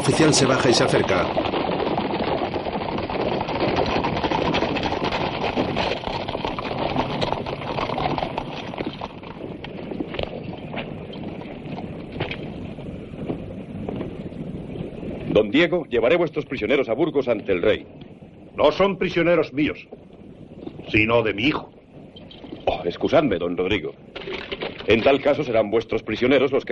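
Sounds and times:
speech: 0.0 - 1.6, 15.5 - 18.0, 18.6 - 20.0, 20.9 - 21.8, 22.8 - 26.7
wind-like hiss: 0.0 - 23.9
hooves of a mounted squadron of soldiers' horses: 0.0 - 26.7.

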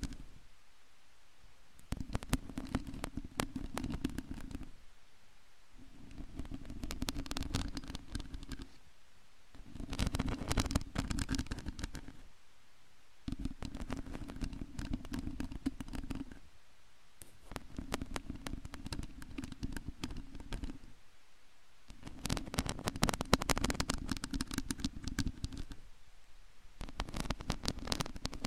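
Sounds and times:
long nail scratching on a microphone: 0.0 - 0.4, 1.8 - 4.8, 5.8 - 8.8, 9.6 - 12.3, 13.3 - 16.4, 17.2 - 20.9, 21.9 - 25.8, 26.8 - 28.4.

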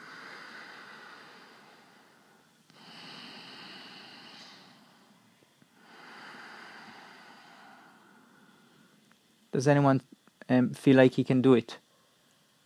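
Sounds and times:
slow steady ujjayi breathing with ocean-like rush: 0.0 - 9.5
speech: 9.6 - 11.8.

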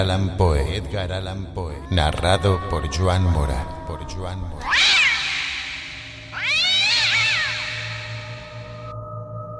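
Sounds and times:
speech: 0.0 - 5.0
cat meowing: 4.6 - 8.9.

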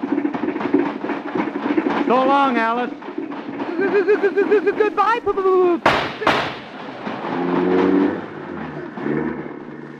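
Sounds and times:
old car engine cranking and running roughly: 0.0 - 9.9
speech: 2.1 - 3.0, 3.8 - 6.5
laughter: 3.6 - 6.4
old car engine backfire bangs: 5.8 - 9.7.

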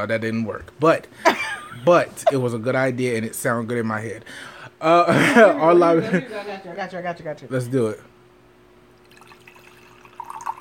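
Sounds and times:
speech: 0.0 - 8.1
laughter: 1.2 - 2.5, 5.0 - 6.5
liquid being poured out: 9.0 - 10.5.

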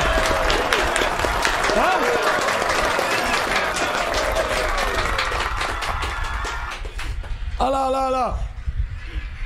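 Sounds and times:
cheering voices: 0.0 - 6.8
crowd applause: 0.0 - 7.2
speech: 1.8 - 2.1, 7.6 - 8.4.

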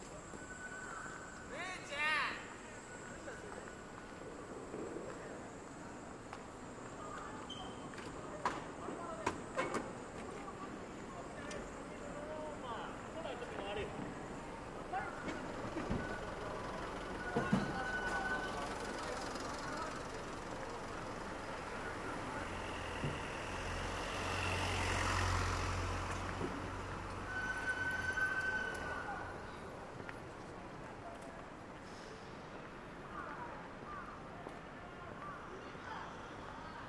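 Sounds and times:
Shinjuku street traffic: 0.0 - 36.8
short tonal beeps: 15.3 - 18.9
vehicle passing: 18.3 - 29.5.

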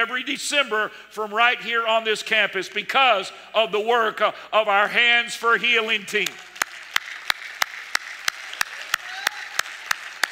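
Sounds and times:
speech: 0.0 - 6.5
audience applause: 6.3 - 10.3.

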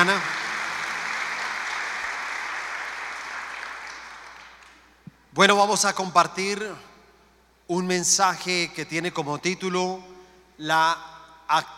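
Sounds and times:
speech: 0.0 - 0.4, 5.4 - 6.9, 7.7 - 11.7
audience applause: 0.0 - 4.8.

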